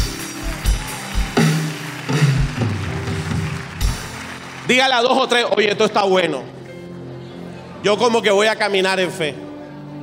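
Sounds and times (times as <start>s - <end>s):
audience applause: 0.0s - 5.7s
speech: 4.7s - 6.6s, 7.8s - 9.5s.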